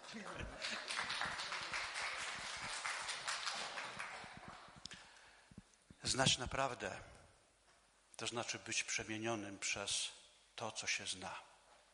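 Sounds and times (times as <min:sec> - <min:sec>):
audience applause: 0:00.0 - 0:04.8
speech: 0:00.1 - 0:01.5, 0:06.1 - 0:07.2, 0:08.2 - 0:11.5.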